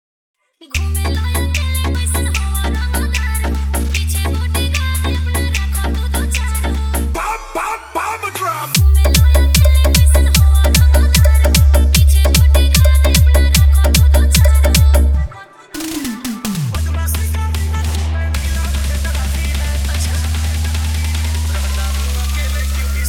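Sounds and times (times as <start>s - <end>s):
Bhojpuri DJ remix hard EDM trance mix: 0.8s - 23.0s.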